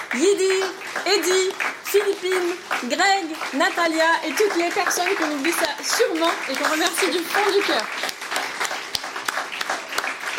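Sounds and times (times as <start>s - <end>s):
crowd applauding: 0.0s - 10.3s
speech: 0.1s - 8.2s.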